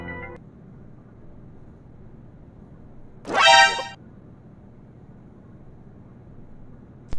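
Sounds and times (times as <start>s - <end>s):
comedy sound effect: 3.3s - 4.0s.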